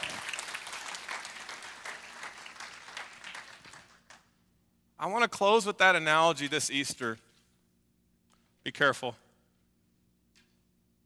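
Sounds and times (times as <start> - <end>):
audience applause: 0.0 - 4.2
speech: 5.0 - 7.3, 8.7 - 9.2.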